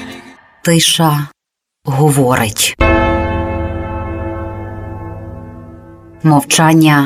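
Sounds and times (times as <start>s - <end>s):
speech: 0.7s - 2.9s, 6.2s - 7.0s
single bell strike ringing: 2.8s - 6.4s.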